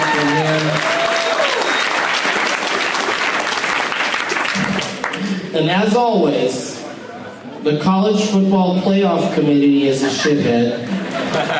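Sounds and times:
audience applause: 0.0s - 5.4s
speech: 5.6s - 6.7s, 7.6s - 11.4s
laughter: 9.9s - 11.5s.

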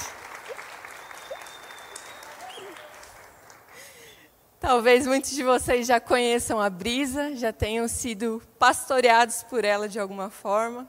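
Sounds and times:
audience applause: 0.0s - 4.0s
speech: 4.6s - 10.8s.

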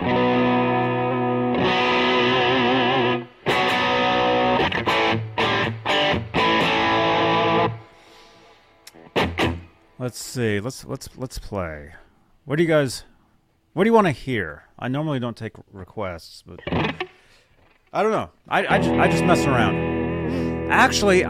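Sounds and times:
heavily effected distorted electric guitar: 0.0s - 8.0s, 8.9s - 9.8s, 16.6s - 17.8s, 18.6s - 21.2s
speech: 10.0s - 13.1s, 13.8s - 17.0s, 17.9s - 21.2s.

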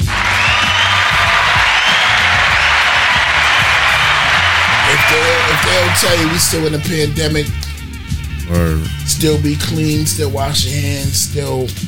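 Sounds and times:
large crowd applauding: 0.0s - 7.6s
speech: 5.8s - 7.7s, 8.5s - 11.8s.

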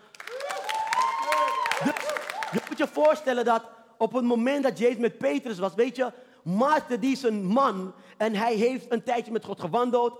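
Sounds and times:
audience applause: 0.0s - 3.2s
speech: 1.8s - 10.1s.

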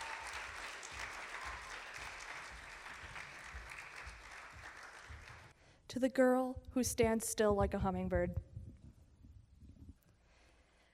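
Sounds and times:
audience applause: 0.0s - 5.5s
speech: 6.0s - 8.5s.

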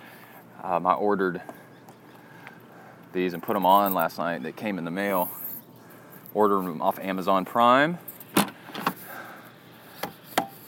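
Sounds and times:
speech: 0.6s - 1.6s, 3.1s - 5.4s, 6.3s - 8.4s
hand slapping newly fitted vehicle parts: 10.0s - 10.6s.

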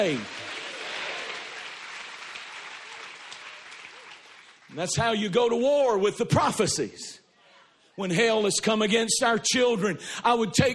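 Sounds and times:
speech: 0.0s - 0.4s, 4.7s - 7.2s, 8.0s - 10.7s
audience clapping hands: 0.0s - 5.4s.

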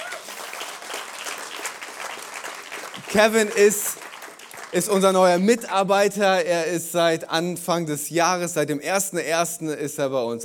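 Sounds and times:
audience applause: 0.0s - 5.2s
speech: 3.1s - 4.0s, 4.7s - 10.4s.

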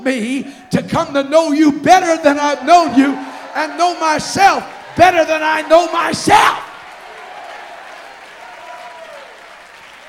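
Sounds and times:
speech: 0.0s - 6.7s
audience applause: 2.2s - 10.0s.

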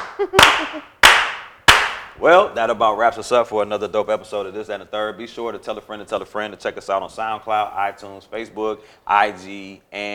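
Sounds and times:
slow clap: 0.0s - 2.2s
speech: 0.2s - 1.0s, 2.2s - 10.1s.

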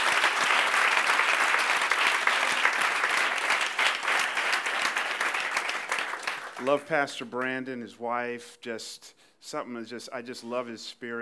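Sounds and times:
audience applauding: 0.0s - 7.0s
speech: 6.6s - 11.2s.

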